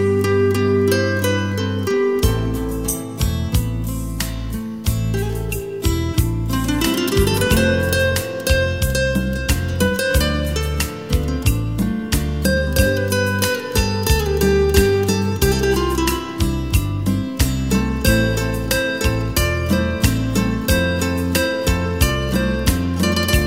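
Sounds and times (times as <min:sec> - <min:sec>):
romantic guitar music: 0:00.0 - 0:23.4.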